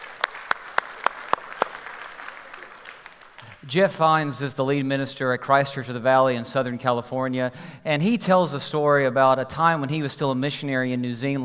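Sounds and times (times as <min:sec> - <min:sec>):
applause welcoming church family members at a Sunday service: 0:00.0 - 0:03.8
speech: 0:03.6 - 0:11.4.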